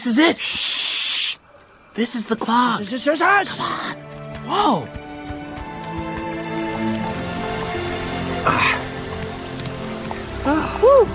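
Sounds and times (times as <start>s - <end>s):
speech: 0.0s - 0.8s, 2.0s - 5.0s, 8.4s - 8.8s, 10.4s - 11.1s
running water: 0.0s - 11.1s.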